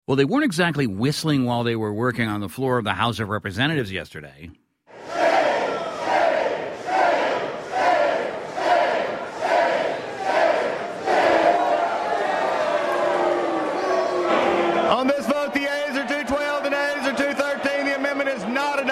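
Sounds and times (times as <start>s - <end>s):
speech: 0.1s - 5.2s
lawmakers booing and hissing: 4.9s - 18.8s.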